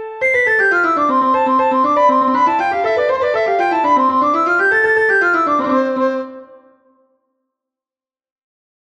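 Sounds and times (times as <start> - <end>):
duet: 0.2 - 6.5.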